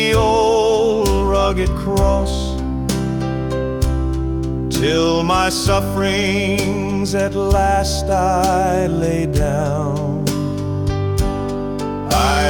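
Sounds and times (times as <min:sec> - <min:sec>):
man singing a hymn: 0:00.0 - 0:02.6, 0:04.7 - 0:10.3, 0:12.1 - 0:12.4
piano: 0:00.0 - 0:12.4.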